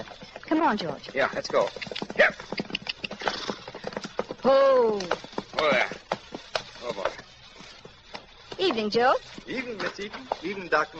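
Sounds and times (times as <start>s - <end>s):
horse hooves clip-clopping: 0.0s - 10.9s
speech: 0.1s - 2.6s, 4.4s - 6.0s, 8.6s - 10.9s.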